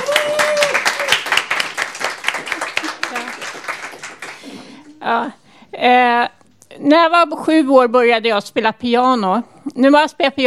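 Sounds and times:
high whoop: 0.0 - 1.3
audience applause: 0.0 - 4.8
speech: 5.0 - 10.4.

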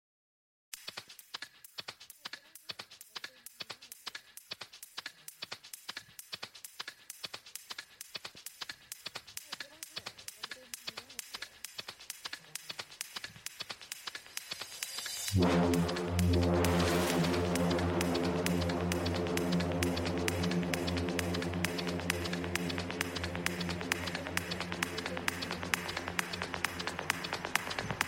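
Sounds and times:
techno music mix: 15.1 - 28.0.

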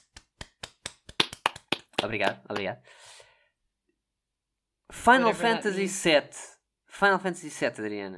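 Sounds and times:
hand clapping: 0.0 - 2.7
speech: 2.0 - 3.2, 4.9 - 8.1.

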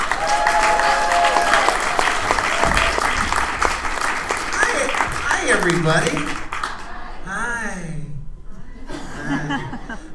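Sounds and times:
audience applause welcoming a local comedian on stage: 0.0 - 7.1
speech: 5.7 - 6.4
laughter: 8.7 - 10.1.

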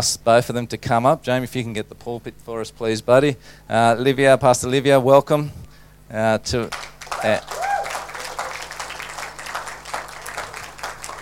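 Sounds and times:
speech: 0.0 - 7.6
audience applause: 6.7 - 11.2
person whooping: 7.1 - 11.2.

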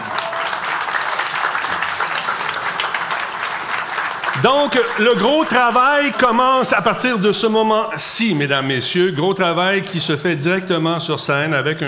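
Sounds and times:
audience applause: 0.0 - 6.7
speech: 4.4 - 11.8.

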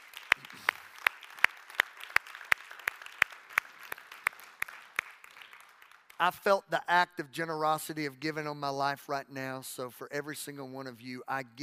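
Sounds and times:
scattered applause: 0.0 - 6.4
group clapping in unison: 0.0 - 7.0
speech: 6.2 - 11.6.

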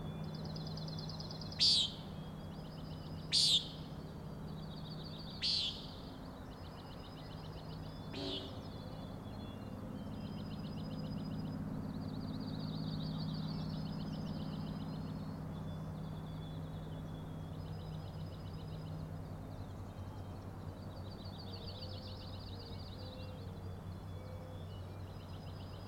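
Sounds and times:
constant low hum: 0.0 - 25.8
common nighthawk nasal peent calls: 1.5 - 2.2, 3.2 - 3.9, 5.4 - 6.0, 8.1 - 8.8.

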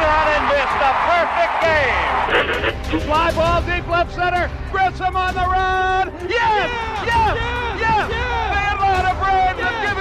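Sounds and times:
baseball stadium crowd cheering: 0.0 - 3.3
speech: 3.0 - 9.9.

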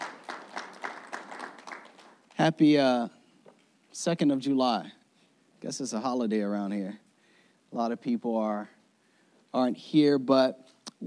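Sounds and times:
audience clapping: 0.0 - 2.6
speech: 2.4 - 3.2, 4.0 - 5.0, 5.6 - 7.0, 7.7 - 8.8, 9.5 - 11.0.

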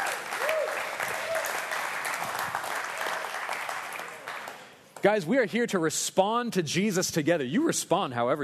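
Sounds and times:
audience clapping: 0.0 - 5.2
speech: 5.0 - 8.4.

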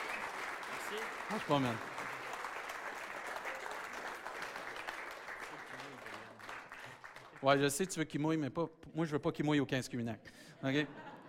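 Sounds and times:
audience applauding: 0.0 - 7.7
speech: 0.9 - 1.9, 7.4 - 11.1
laughter: 10.6 - 11.2.

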